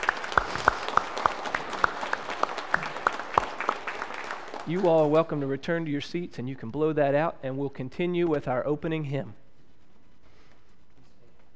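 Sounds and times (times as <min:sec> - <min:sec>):
round of applause: 0:00.0 - 0:05.6
speech: 0:04.7 - 0:09.4.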